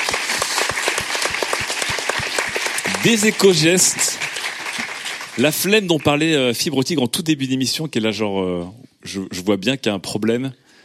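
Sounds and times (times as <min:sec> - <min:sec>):
audience applause: 0:00.0 - 0:06.4
speech: 0:03.0 - 0:04.3, 0:05.4 - 0:10.6.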